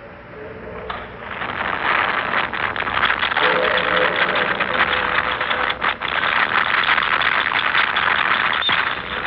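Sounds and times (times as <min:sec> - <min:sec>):
radio telescope recording of space noise: 0:00.0 - 0:09.2.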